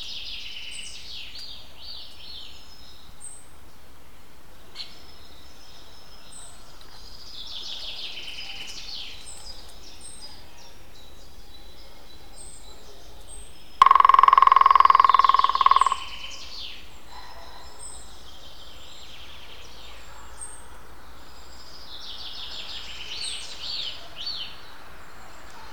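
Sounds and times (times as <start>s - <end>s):
European green woodpecker drumming: 13.8s - 16.5s.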